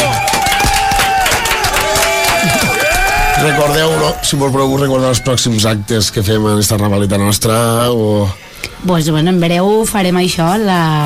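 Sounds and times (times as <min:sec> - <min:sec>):
crowd applauding: 0:00.0 - 0:04.8
voices cheering: 0:00.0 - 0:05.8
speech: 0:03.4 - 0:11.0.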